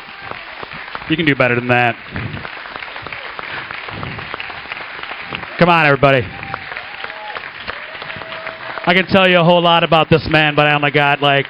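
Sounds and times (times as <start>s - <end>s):
crowd applause: 0.0s - 11.4s
speech: 1.1s - 2.4s, 5.6s - 6.4s, 8.8s - 11.4s.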